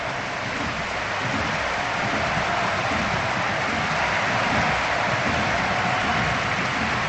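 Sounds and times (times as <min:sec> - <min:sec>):
stadium crowd ovation and applause: 0:00.0 - 0:07.0.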